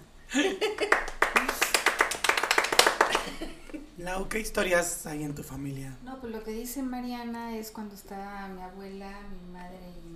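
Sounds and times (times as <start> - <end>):
brief round of audience applause: 0.7 - 3.5
speech: 4.0 - 10.1.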